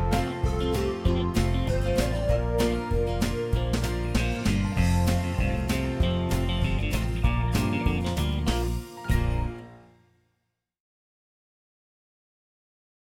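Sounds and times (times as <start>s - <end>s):
instrumental music: 0.0s - 10.1s.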